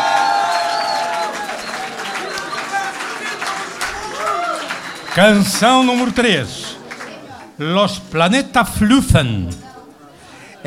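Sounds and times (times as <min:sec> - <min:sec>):
audience applause: 0:00.0 - 0:07.6
speech: 0:05.2 - 0:06.7, 0:07.6 - 0:09.7.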